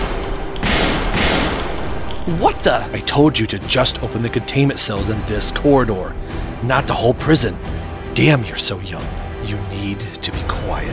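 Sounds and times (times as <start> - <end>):
gunshots: 0.0 - 2.4
speech: 2.3 - 10.9.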